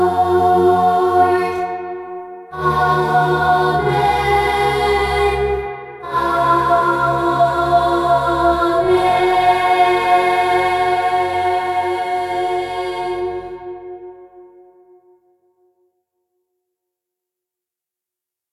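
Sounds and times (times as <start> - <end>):
choir singing: 0.0 - 14.5.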